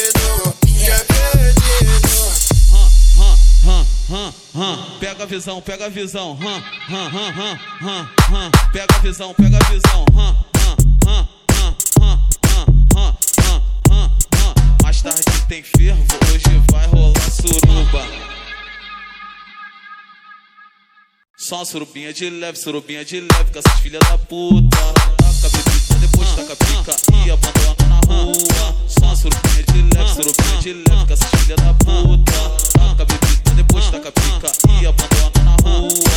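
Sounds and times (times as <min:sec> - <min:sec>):
electro funk music: 0:00.0 - 0:04.4, 0:08.2 - 0:18.6, 0:23.3 - 0:36.1.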